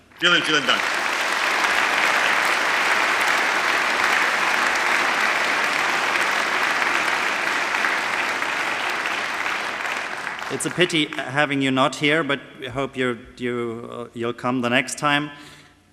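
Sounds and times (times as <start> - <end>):
audience applause: 0.0 - 11.6
speech: 0.2 - 1.0, 10.5 - 15.5.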